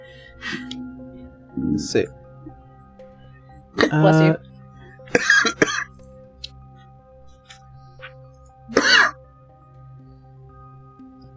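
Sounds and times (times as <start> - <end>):
speech: 1.5 - 2.2, 3.7 - 4.5
person sneezing: 8.7 - 9.1.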